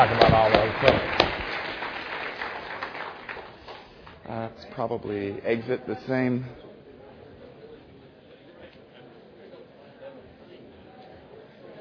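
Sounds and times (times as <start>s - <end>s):
audience applause for a panel: 0.0s - 4.3s
speech: 4.8s - 6.7s.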